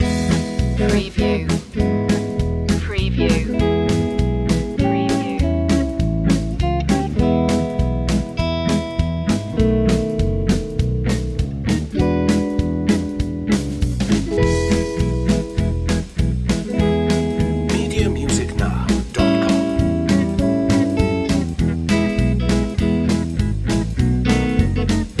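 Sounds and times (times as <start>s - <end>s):
Texas swing music: 0.0s - 25.1s.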